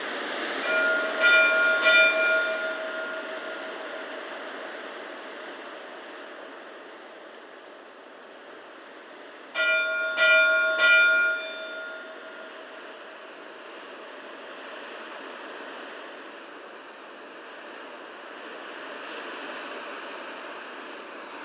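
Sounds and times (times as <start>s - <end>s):
large church bells ringing in Reykjavik: 0.6s - 3.7s, 9.6s - 12.5s.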